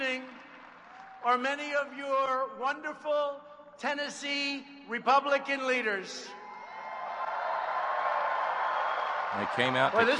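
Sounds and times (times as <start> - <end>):
crowd cheering at a political rally: 0.0 - 1.8, 6.3 - 10.1
speech: 1.2 - 6.4, 9.3 - 10.1.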